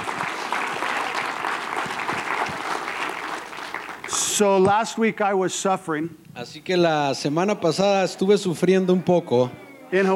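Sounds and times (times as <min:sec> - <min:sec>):
church congregation applauding during a bilingual sermon: 0:00.0 - 0:04.5
speech: 0:04.4 - 0:10.1.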